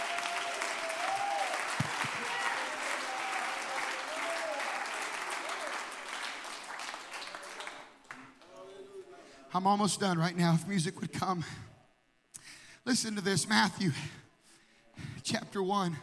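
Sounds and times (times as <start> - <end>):
scattered cheers and voices: 0.0 - 5.8
audience applause: 0.0 - 8.5
speech: 9.6 - 11.7, 12.8 - 14.2, 15.6 - 16.0.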